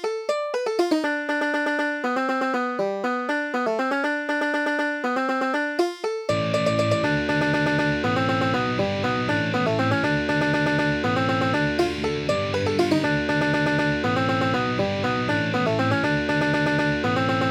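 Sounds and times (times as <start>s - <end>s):
banjo: 0.0s - 17.4s.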